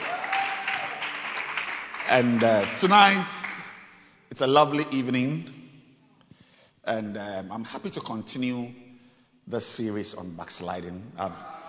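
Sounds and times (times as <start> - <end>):
audience clapping: 0.0 - 4.0
speech: 2.1 - 3.4, 4.3 - 5.6, 6.9 - 8.8, 9.5 - 11.6.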